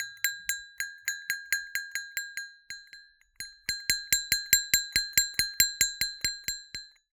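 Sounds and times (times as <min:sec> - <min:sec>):
cowbell chain percussion: 0:00.0 - 0:07.1.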